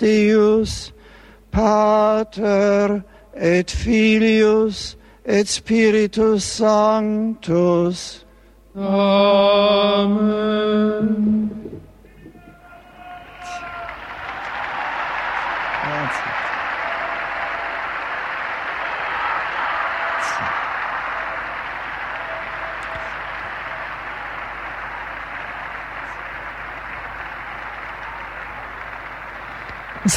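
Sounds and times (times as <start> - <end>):
speech: 0.0 - 0.9, 1.5 - 8.2, 8.8 - 11.6
large crowd applause: 12.6 - 30.1.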